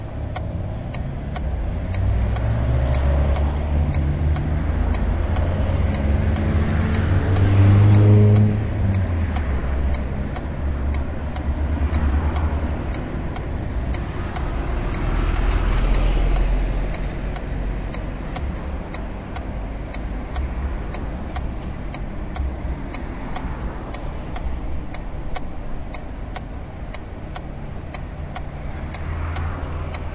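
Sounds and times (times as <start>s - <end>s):
acoustic traffic light signal at a stop: 0.0s - 30.1s.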